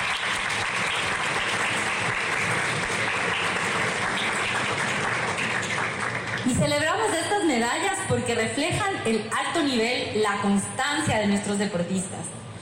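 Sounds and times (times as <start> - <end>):
audience applause: 0.0 - 6.6
speech: 6.6 - 12.4.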